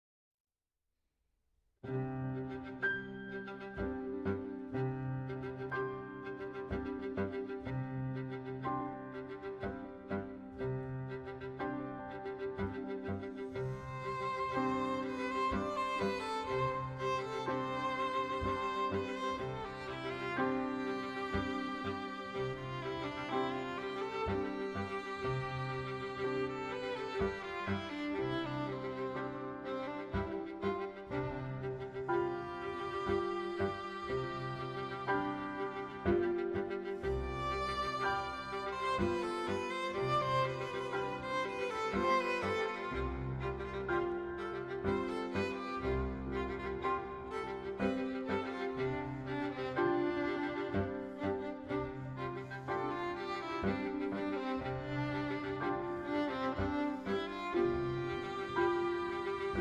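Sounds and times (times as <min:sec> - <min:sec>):
piano: 0:01.8 - 0:59.5
two violins: 0:01.9 - 0:59.5.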